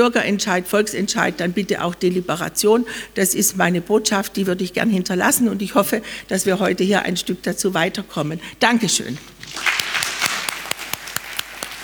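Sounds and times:
speech: 0.0s - 9.9s
audience applause: 9.4s - 11.8s.

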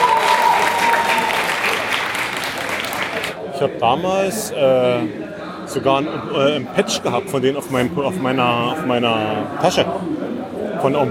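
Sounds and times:
audience applause: 0.0s - 3.4s
speech: 3.6s - 10.2s, 10.8s - 11.1s.

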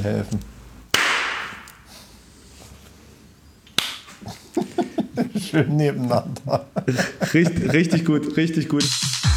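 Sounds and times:
speech: 0.0s - 0.6s, 5.4s - 9.2s
single hand clap: 1.0s - 1.7s, 3.8s - 4.1s
laughter: 4.2s - 8.6s.

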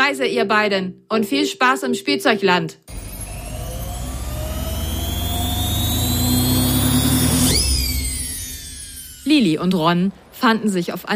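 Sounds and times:
speech: 0.1s - 3.0s, 9.3s - 11.1s
toy washing machine spin cycle: 2.9s - 10.5s.

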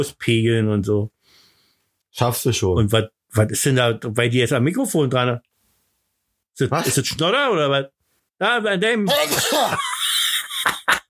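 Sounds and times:
speech: 0.0s - 1.2s, 2.2s - 5.5s, 6.6s - 10.0s
loud sneeze: 9.1s - 9.8s
laughter: 9.1s - 11.0s.

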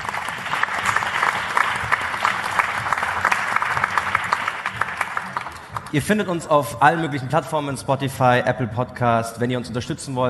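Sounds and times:
audience clapping: 0.0s - 6.4s
speech: 5.9s - 10.2s.

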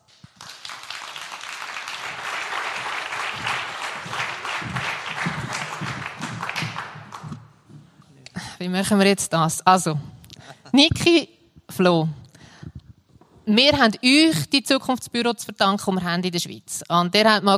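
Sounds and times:
audience applause: 0.0s - 7.7s
speech: 8.6s - 10.1s, 10.8s - 12.2s, 13.5s - 17.5s.

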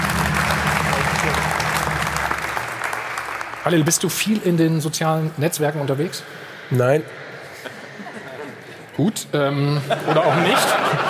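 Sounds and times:
audience applause: 0.0s - 4.6s
speech: 3.6s - 7.2s, 9.0s - 11.0s
laughter: 7.4s - 11.0s.

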